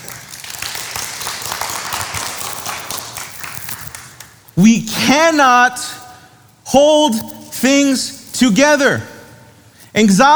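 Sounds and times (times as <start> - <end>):
audience round of applause: 0.0 - 4.3
speech: 4.6 - 6.0, 6.7 - 9.1, 10.0 - 10.3.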